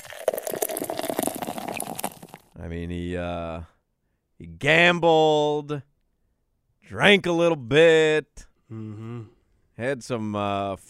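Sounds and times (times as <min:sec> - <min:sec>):
Funky Buddha beer being poured: 0:00.0 - 0:02.5
speech: 0:02.7 - 0:03.8, 0:04.4 - 0:05.9, 0:06.8 - 0:10.8.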